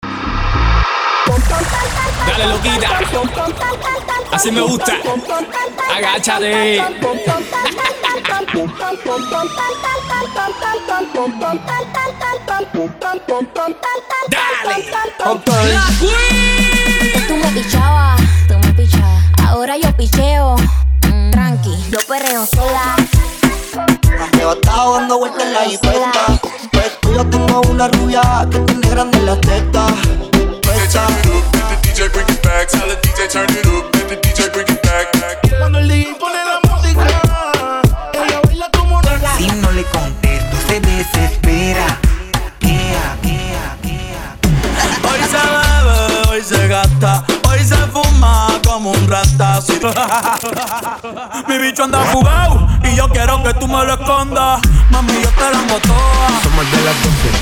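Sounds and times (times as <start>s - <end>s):
reggaeton music: 0.0s - 57.4s
laughter: 7.0s - 9.6s, 44.6s - 45.7s, 49.9s - 52.0s.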